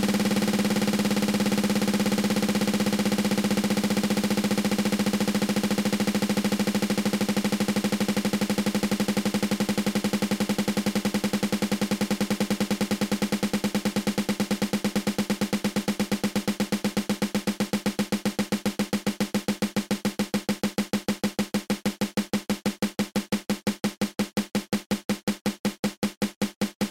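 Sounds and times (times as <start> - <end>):
drum double stroke roll: 0.0 - 26.9.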